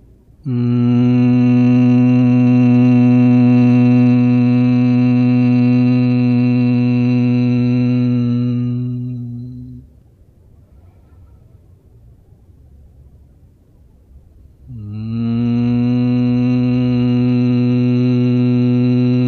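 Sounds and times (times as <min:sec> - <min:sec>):
person humming imitating a bee: 0:00.4 - 0:09.9, 0:14.7 - 0:19.2.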